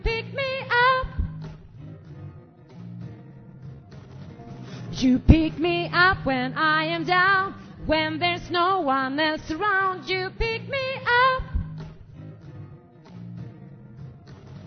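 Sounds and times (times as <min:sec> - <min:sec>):
soprano voice part singing: 0:00.0 - 0:01.4, 0:04.9 - 0:11.8.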